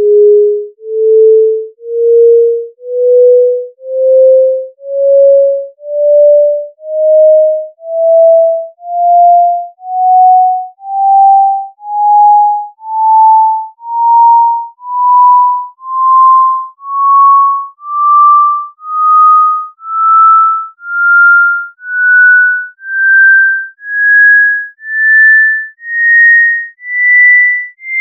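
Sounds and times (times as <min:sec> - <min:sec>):
sine tone scale: 0:00.0 - 0:28.0.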